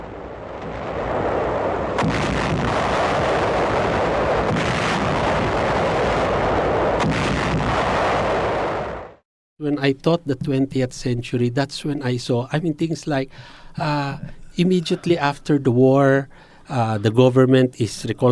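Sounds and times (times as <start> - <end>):
U.S. naval guns battling planes and destroyers: 0.0 - 9.2
naval bombardment of the Lingayen Gulf area: 0.0 - 9.2
speech: 2.0 - 2.3, 9.6 - 18.2.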